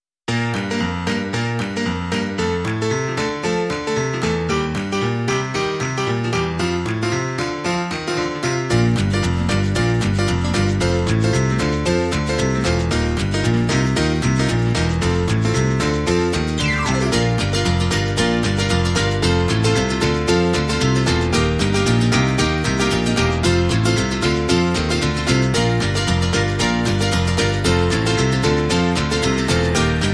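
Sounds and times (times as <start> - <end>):
instrumental music: 0.3 - 30.1.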